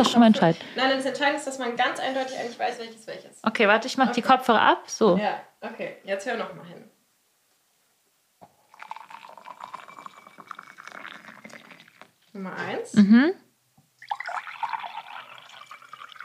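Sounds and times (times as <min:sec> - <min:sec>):
speech: 0:00.0 - 0:06.9, 0:12.4 - 0:13.4
warm and cold water being poured: 0:08.4 - 0:12.2, 0:14.0 - 0:16.2.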